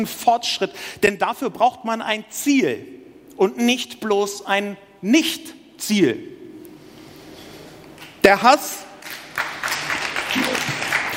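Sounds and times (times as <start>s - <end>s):
speech: 0.0s - 6.4s, 8.2s - 8.9s
audience applauding during a spoken talk: 9.0s - 11.1s.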